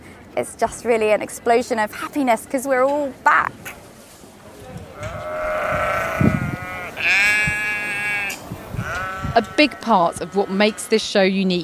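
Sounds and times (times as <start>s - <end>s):
speech: 0.4s - 3.8s, 9.4s - 11.6s
sheep: 5.0s - 11.0s.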